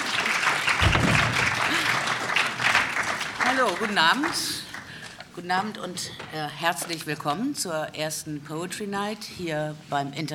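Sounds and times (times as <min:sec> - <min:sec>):
audience clapping: 0:00.0 - 0:05.2
speech: 0:03.6 - 0:04.6, 0:05.4 - 0:10.3.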